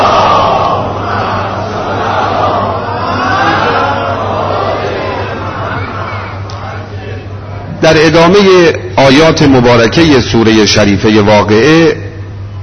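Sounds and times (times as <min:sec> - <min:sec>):
congregation reciting salawat together in unison: 0:00.0 - 0:07.4
speech: 0:07.9 - 0:12.1.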